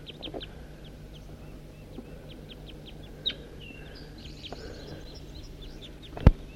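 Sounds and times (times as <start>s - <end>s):
flock of crossbills calling while foraging in a tree: 0.0s - 6.5s.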